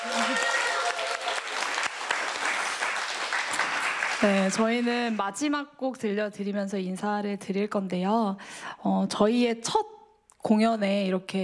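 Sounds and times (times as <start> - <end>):
audience applause: 0.0 - 5.2
speech: 4.2 - 11.4.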